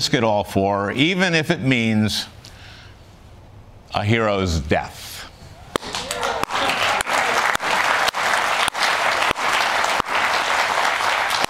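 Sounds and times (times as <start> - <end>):
speech: 0.0 - 2.4, 3.9 - 5.1
studio audience clapping: 5.8 - 11.4.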